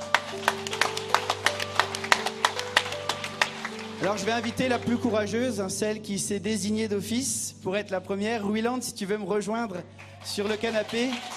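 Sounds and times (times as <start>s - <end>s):
sparse audience applause: 0.0s - 5.1s, 10.0s - 11.3s
speech: 4.0s - 11.3s.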